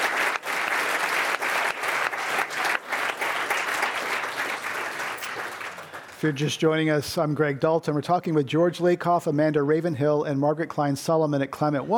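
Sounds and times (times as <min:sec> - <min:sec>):
audience applause: 0:00.0 - 0:06.6
speech: 0:06.2 - 0:11.9.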